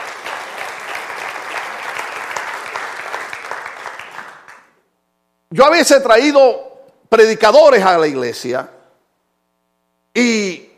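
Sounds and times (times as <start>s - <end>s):
audience applause: 0.0s - 4.8s
speech: 5.5s - 8.8s, 10.2s - 10.7s.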